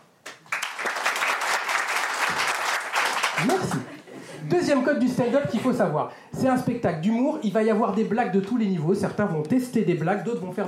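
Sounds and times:
crowd applauding: 0.2s - 3.9s
laughter and voices: 3.4s - 5.9s
speech: 3.4s - 10.6s.

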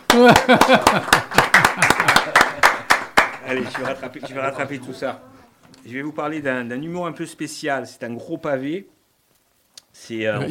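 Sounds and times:
applause: 0.0s - 4.2s
laughter: 0.0s - 5.6s
speech: 0.2s - 1.9s, 3.5s - 9.0s, 10.0s - 10.4s.

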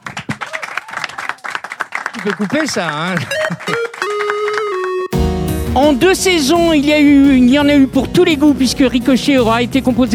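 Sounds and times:
audience applause: 0.0s - 5.1s
speech: 2.2s - 3.9s, 5.8s - 10.1s.

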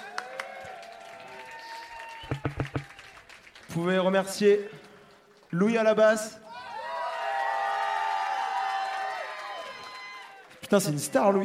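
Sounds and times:
audience applauding the sound engineer: 0.0s - 3.7s, 6.7s - 10.5s
speech: 3.8s - 4.8s, 5.5s - 6.4s, 10.7s - 11.4s.

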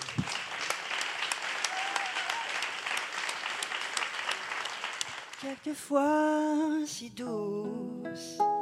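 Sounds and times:
audience applause for arriving guest: 0.0s - 5.5s
speech: 5.4s - 8.5s.

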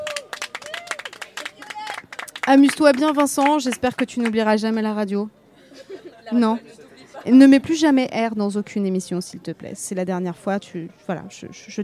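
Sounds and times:
people calling out and cheering: 0.0s - 3.6s
small group applauding: 0.0s - 4.5s
speech: 2.5s - 5.4s, 6.3s - 11.8s
laughter: 5.5s - 7.5s.

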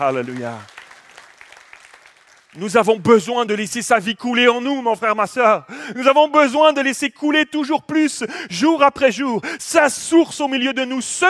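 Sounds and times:
speech: 0.0s - 0.7s, 2.6s - 11.2s
audience applause: 0.0s - 2.6s.

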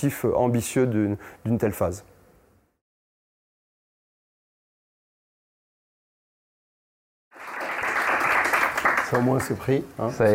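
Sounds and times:
speech: 0.0s - 2.1s, 9.1s - 10.3s
audience applause: 7.3s - 9.6s.

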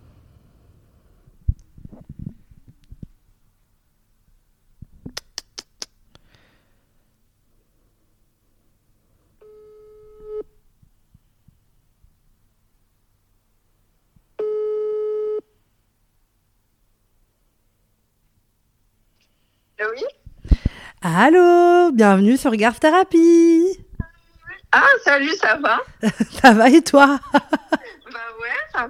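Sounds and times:
telephone ringback tone while calling a listener: 9.4s - 10.4s, 14.4s - 15.4s
speech: 19.8s - 20.2s, 21.0s - 23.6s, 25.1s - 27.6s
laughter: 26.0s - 28.1s.

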